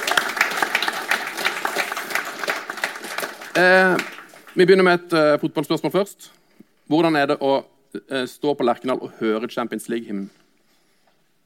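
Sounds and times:
audience applause: 0.0 - 4.6
speech: 3.6 - 10.4.

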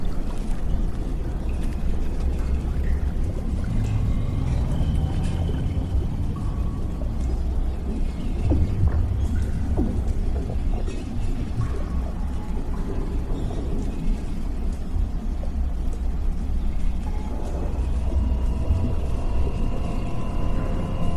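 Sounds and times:
damaged underwater lab low churning rumble: 0.0 - 21.1
deep hum: 0.0 - 21.1
tonal whines: 3.2 - 13.8, 16.2 - 21.1.

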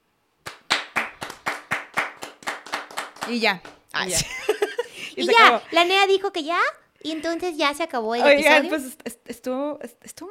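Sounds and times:
hands clapping in a steady, even rhythm: 0.4 - 4.0
speech: 3.3 - 10.3
laughter: 4.1 - 5.8.

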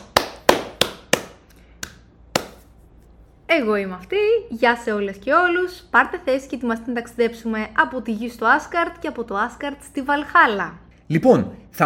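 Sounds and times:
hand claps: 0.0 - 2.8
speech: 3.5 - 11.8.

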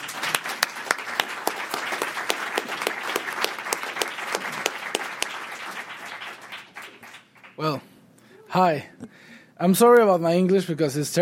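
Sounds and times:
audience clapping welcoming a speaker: 0.0 - 7.8
speech: 7.6 - 7.9, 8.5 - 11.2.

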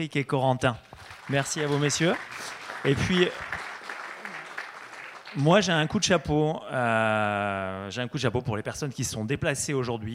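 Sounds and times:
speech: 0.0 - 3.6, 5.3 - 10.1
audience applause: 1.0 - 6.1.

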